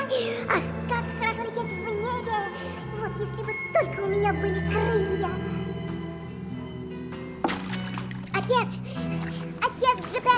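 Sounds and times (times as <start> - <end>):
child talking: 0.0 - 5.7, 8.3 - 10.3
sustained music: 0.0 - 10.3
water splashing for a swimming-in-the-ocean scene on a theatre stage: 7.4 - 10.3.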